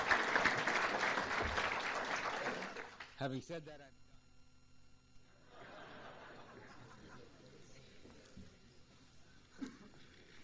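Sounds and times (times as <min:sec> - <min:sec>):
room full of people applauding: 0:00.0 - 0:03.2
speech: 0:03.2 - 0:04.0
laughter: 0:05.3 - 0:08.4.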